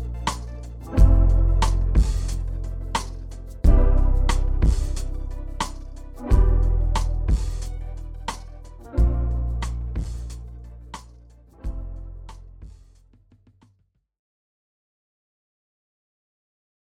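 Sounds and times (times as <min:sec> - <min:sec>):
instrumental type beat: 0:00.0 - 0:13.4.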